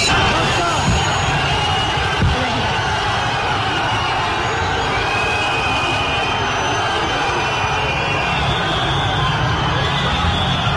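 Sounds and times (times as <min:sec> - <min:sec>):
large crowd booing: 0:00.0 - 0:10.7.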